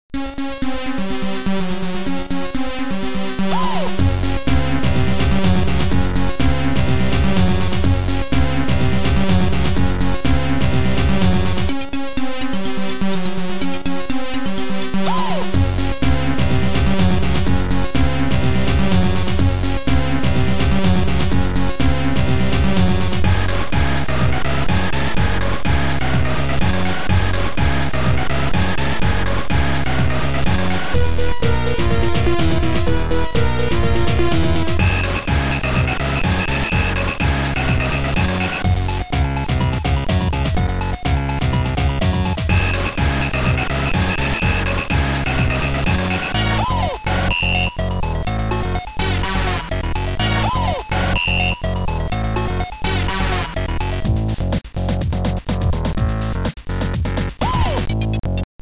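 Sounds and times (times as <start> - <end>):
techno party music: 0.2 - 58.5.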